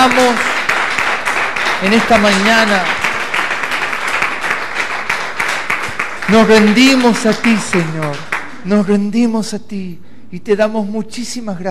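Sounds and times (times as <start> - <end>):
speech: 0.0 - 0.5, 1.8 - 3.0, 6.3 - 11.6
audience applause: 0.0 - 8.6.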